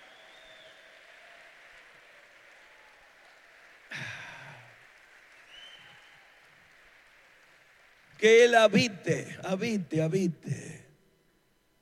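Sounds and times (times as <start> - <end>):
audience applause: 0.0 - 9.3
speech: 8.2 - 10.8.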